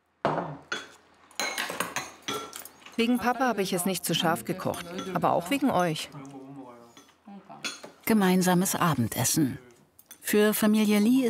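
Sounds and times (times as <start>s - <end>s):
dishes and cutlery clinking as food is served into bowls at a family dinner: 0.3s - 3.3s, 4.5s - 8.0s
speech: 3.0s - 6.4s, 8.1s - 11.2s.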